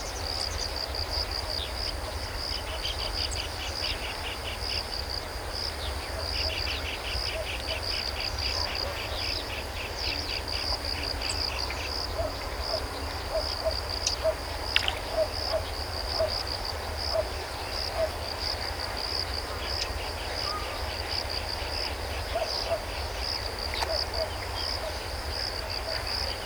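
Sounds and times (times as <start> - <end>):
crickets chirping: 0.0 - 26.4.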